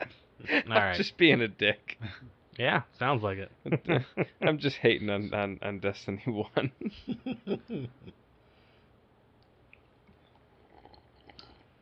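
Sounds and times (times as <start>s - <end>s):
laughter: 0.0s - 1.1s, 3.7s - 4.6s, 6.4s - 8.2s
speech: 0.6s - 8.2s
person gulping water: 9.7s - 11.8s.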